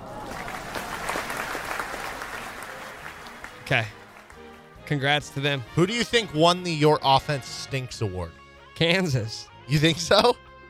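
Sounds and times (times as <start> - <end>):
round of applause: 0.0 - 4.8
speech: 3.7 - 4.0, 4.9 - 10.4.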